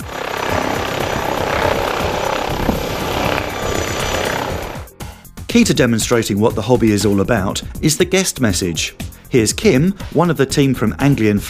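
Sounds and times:
air ambulance helicopter landing: 0.0 - 5.1
speech: 5.5 - 11.4.

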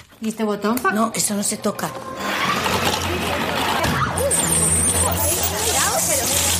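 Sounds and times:
speech: 0.2 - 2.2
Turbo Thunder kitchen blender with titanium alloy blades whirring: 2.1 - 6.5.

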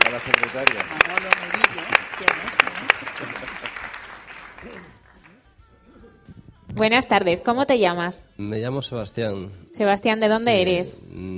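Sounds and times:
audience applause: 0.0 - 5.4
speech: 0.2 - 4.0, 4.6 - 5.0, 6.7 - 11.3.

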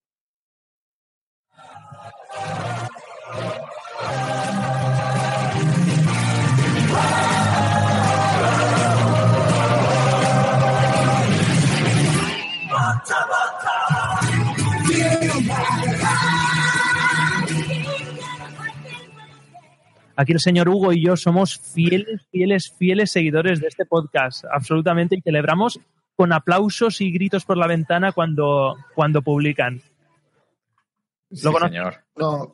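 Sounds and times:
podcast intro music: 1.6 - 18.6
speech: 20.2 - 29.9, 31.3 - 32.5.

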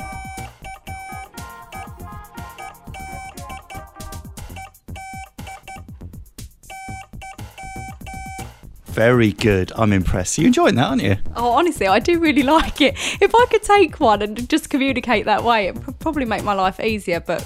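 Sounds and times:
Morse code beeps sent on a Morse key: 0.0 - 5.9, 6.6 - 8.6
speech: 9.0 - 17.4.

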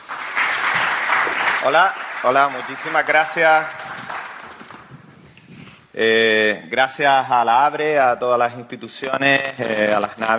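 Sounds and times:
audience applause: 0.0 - 5.1
speech: 1.6 - 3.8, 6.0 - 10.3.

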